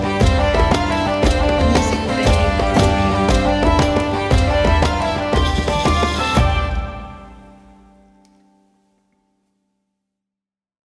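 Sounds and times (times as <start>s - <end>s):
medieval tavern ambience: 0.6s - 7.6s.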